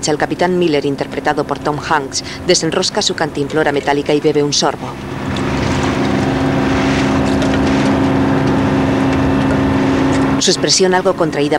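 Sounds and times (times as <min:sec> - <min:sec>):
speech: 0:00.0 - 0:05.3, 0:10.4 - 0:11.5
waves crashing against the armour of landing craft: 0:04.8 - 0:11.2.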